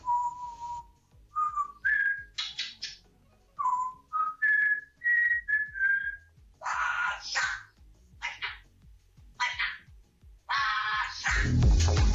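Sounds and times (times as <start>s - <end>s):
parrot whistling a football club anthem: 0.0s - 3.0s, 3.6s - 6.2s
parrot squawking: 2.4s - 3.0s, 6.6s - 8.7s, 9.4s - 9.9s, 10.5s - 11.6s.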